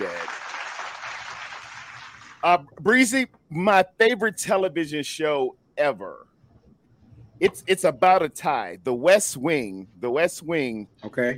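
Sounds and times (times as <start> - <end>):
crowd applause: 0.0 - 2.4
speech: 2.4 - 6.3, 7.4 - 11.3.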